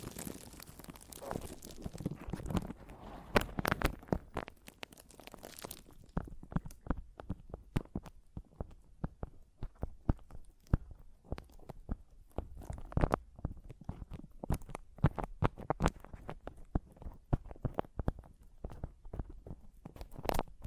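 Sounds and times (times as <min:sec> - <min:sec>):
tapping and scratching on a microphone: 0:00.0 - 0:04.8, 0:05.4 - 0:20.6.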